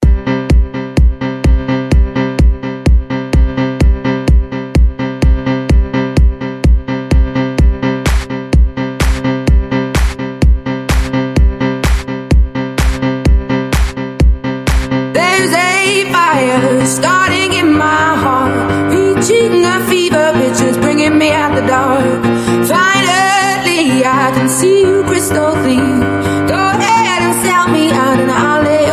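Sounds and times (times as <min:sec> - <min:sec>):
dubstep remix: 0:00.0 - 0:28.8.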